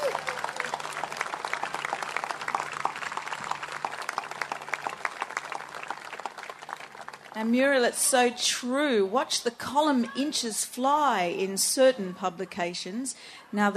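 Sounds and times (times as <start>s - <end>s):
audience applause: 0.0s - 7.5s
speech: 7.4s - 13.7s.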